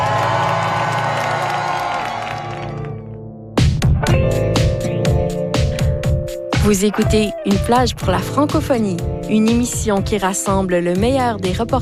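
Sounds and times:
rally crowd shouting and cheering: 0.0s - 3.2s
rhythmic punchy sounds: 3.6s - 11.7s
speech: 6.6s - 11.7s.

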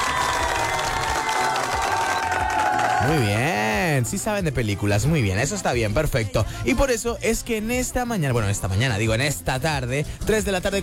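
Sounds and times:
applause: 0.0s - 3.5s
speech: 3.0s - 10.8s.

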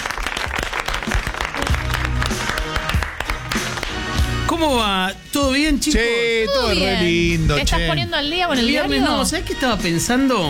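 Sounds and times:
applause: 0.0s - 4.4s
speech: 4.6s - 10.4s.

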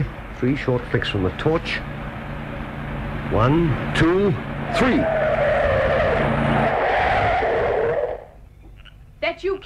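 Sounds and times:
car engine rumble: 0.0s - 9.3s
speech: 0.4s - 1.9s, 3.3s - 5.2s, 9.4s - 9.6s
car tires screeching: 3.0s - 8.4s.

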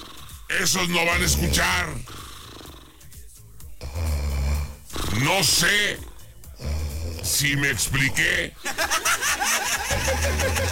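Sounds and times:
sleeping person snoring: 0.0s - 8.4s
speech: 0.5s - 2.2s, 5.2s - 6.1s, 7.3s - 9.4s, 10.1s - 10.6s
laughter: 8.6s - 10.6s.

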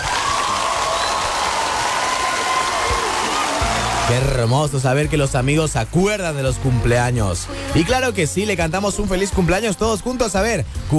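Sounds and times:
applause: 0.0s - 4.5s
speech: 4.1s - 10.9s.

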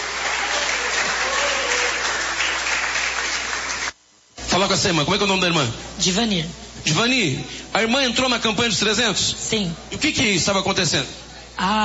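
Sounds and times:
audience clapping hands: 0.0s - 4.0s
speech: 4.6s - 11.8s.

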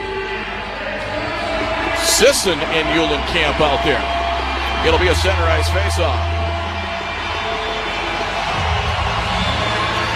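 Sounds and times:
arena crowd cheering at Shields Arena: 0.0s - 10.1s
speech: 2.2s - 4.2s, 4.8s - 6.4s.

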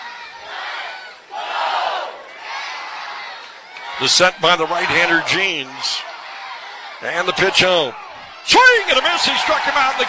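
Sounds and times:
baseball fans cheering at a Fargo-Moorhead RedHawks home game: 0.0s - 10.0s
speech: 4.0s - 6.1s, 7.0s - 10.0s.

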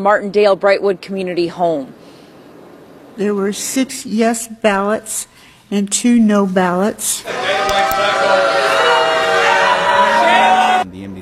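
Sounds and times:
speech: 0.0s - 2.0s, 3.2s - 8.8s, 10.8s - 11.1s
crowd booing loudly: 7.2s - 10.8s.

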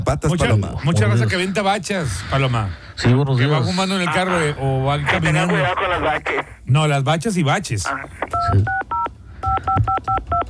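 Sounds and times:
low hum: 0.0s - 10.4s
speech: 0.1s - 8.8s
telephone DTMF dialing tones: 8.4s - 10.4s.

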